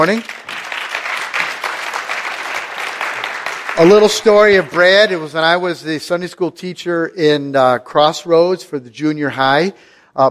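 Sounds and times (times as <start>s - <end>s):
speech: 0.0s - 0.3s, 3.8s - 10.3s
audience applause welcoming a guest on stage: 0.0s - 5.4s.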